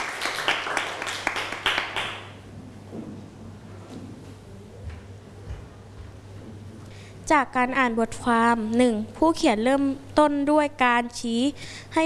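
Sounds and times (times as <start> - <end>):
students clapping: 0.0 - 2.4
speech: 7.3 - 12.0.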